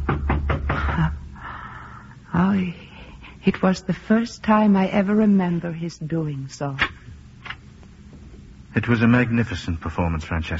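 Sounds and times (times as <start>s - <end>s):
knocking at a door: 0.0s - 1.1s
speech: 2.6s - 2.8s, 3.4s - 7.0s, 8.8s - 10.5s.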